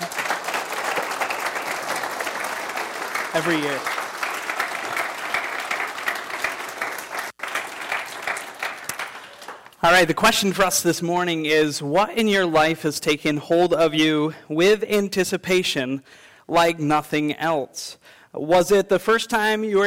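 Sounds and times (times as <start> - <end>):
audience applause: 0.0 - 9.8
speech: 3.3 - 4.0, 9.8 - 19.8.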